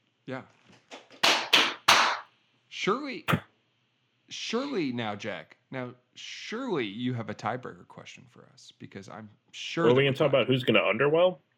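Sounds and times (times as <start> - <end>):
speech: 0.3 - 0.7, 2.8 - 3.5, 4.3 - 11.5
group clapping hands to mark edit: 0.9 - 2.3.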